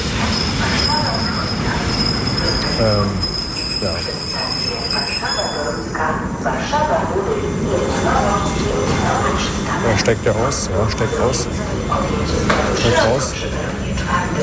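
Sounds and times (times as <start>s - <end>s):
S-Bahn commuter train running: 0.0s - 14.4s
speech: 2.8s - 14.4s.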